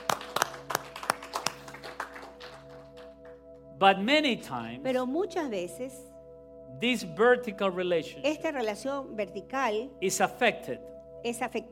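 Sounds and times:
group clapping in quick uneven bursts: 0:00.0 - 0:03.6
speech: 0:03.8 - 0:06.1, 0:06.8 - 0:11.7.

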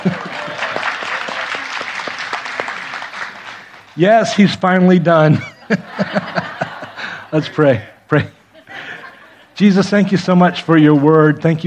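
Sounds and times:
speech: 0:00.0 - 0:00.3, 0:04.0 - 0:06.5, 0:07.3 - 0:08.4, 0:09.6 - 0:11.6
laughter: 0:00.0 - 0:03.6, 0:05.2 - 0:10.2
audience applauding: 0:00.0 - 0:04.4.

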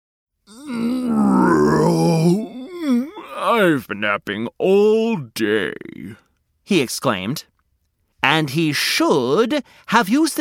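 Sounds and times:
person imitating a drawn-out waking growl: 0:00.5 - 0:03.2
speech: 0:01.5 - 0:02.5, 0:03.6 - 0:07.5, 0:08.2 - 0:10.3.

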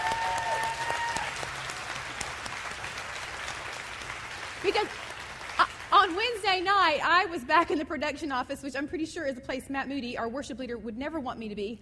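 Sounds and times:
audience round of applause: 0:00.0 - 0:06.4
speech: 0:04.7 - 0:05.0, 0:06.1 - 0:11.8.

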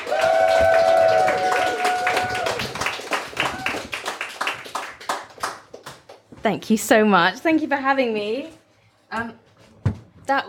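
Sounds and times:
audience clapping to welcome a guest to the stage: 0:00.0 - 0:06.3
speech: 0:06.4 - 0:09.4, 0:10.3 - 0:10.4.

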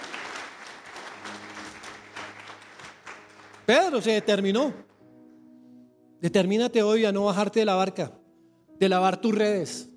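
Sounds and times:
audience applause: 0:00.0 - 0:04.8
speech: 0:03.7 - 0:04.9, 0:06.2 - 0:08.2, 0:08.8 - 0:09.9.

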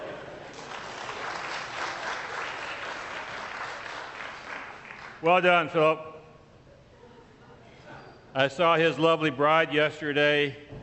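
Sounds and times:
audience applause: 0:00.0 - 0:05.2
speech: 0:05.2 - 0:06.1, 0:08.4 - 0:10.7.

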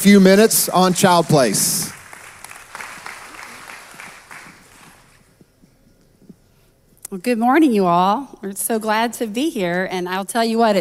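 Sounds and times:
speech: 0:00.0 - 0:02.0, 0:07.1 - 0:10.7
audience applause welcoming a speaker to the stage: 0:00.0 - 0:05.2.

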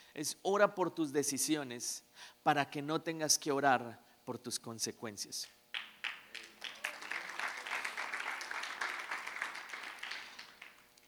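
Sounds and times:
speech: 0:00.2 - 0:05.6
single person clapping: 0:05.4 - 0:11.0.

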